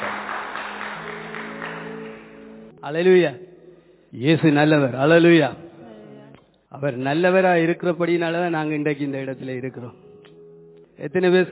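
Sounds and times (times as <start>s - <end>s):
church audience clapping to welcome a visiting pastor: 0.0s - 2.7s
speech: 2.8s - 3.5s, 4.1s - 5.6s, 6.7s - 10.0s, 11.0s - 11.4s.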